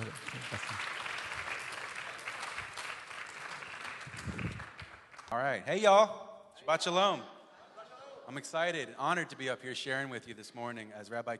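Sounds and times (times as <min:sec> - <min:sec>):
congregation applause at a Shabbat service welcoming a speaker: 0:00.0 - 0:05.3
speech: 0:05.3 - 0:07.3, 0:08.3 - 0:11.3.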